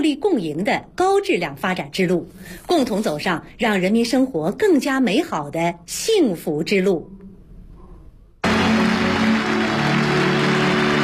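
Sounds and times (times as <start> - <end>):
speech: 0.0 - 7.2
applause from a large crowd in a conference hall: 8.4 - 11.0.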